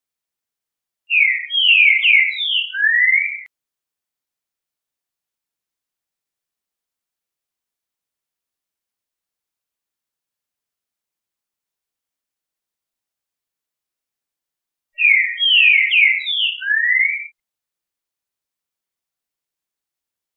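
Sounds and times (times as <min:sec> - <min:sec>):
Trinca Ferro bird singing classic song: 0:01.1 - 0:03.5, 0:15.0 - 0:17.4.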